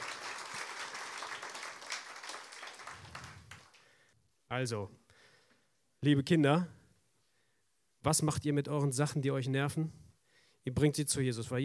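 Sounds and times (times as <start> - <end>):
crowd of children applauding: 0.0 - 3.8
speech: 4.5 - 5.0, 6.0 - 6.8, 8.0 - 10.0, 10.6 - 11.6.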